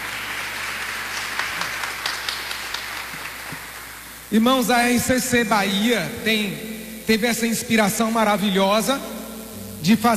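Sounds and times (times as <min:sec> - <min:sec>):
audience applauding: 0:00.0 - 0:04.0
speech: 0:04.3 - 0:09.1, 0:09.8 - 0:10.1.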